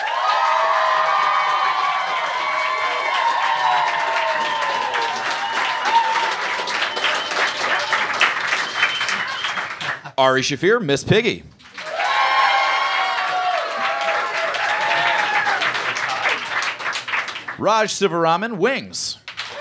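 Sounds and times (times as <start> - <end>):
whoops and shouted voices: 0.0 - 8.1, 11.8 - 15.7
audience applauding: 0.0 - 10.2, 11.6 - 17.9, 19.2 - 19.5
speech: 10.2 - 11.5, 17.6 - 19.2.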